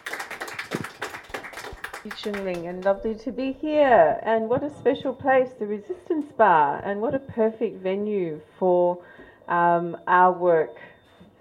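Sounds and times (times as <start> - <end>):
audience applause: 0.0 - 3.0
speech: 2.0 - 10.9.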